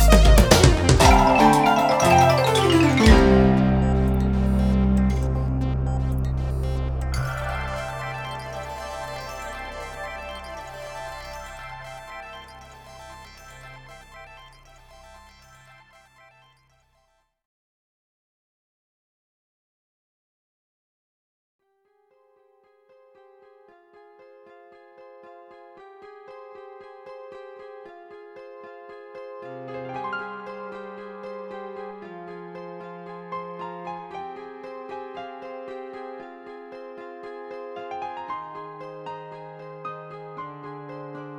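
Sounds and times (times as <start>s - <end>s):
synthesizer factory demo songs: 0.0s - 16.4s.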